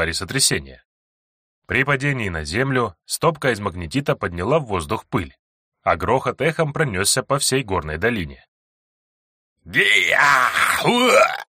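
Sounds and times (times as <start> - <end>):
speech: 0.0 - 0.9, 1.7 - 8.5, 9.6 - 11.4
troll monster groaning in pain: 9.7 - 11.5.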